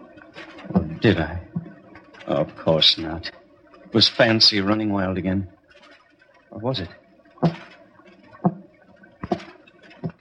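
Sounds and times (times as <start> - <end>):
speech: 1.0 - 1.5, 2.3 - 5.6, 6.5 - 7.6
tapping on a door: 7.4 - 7.7.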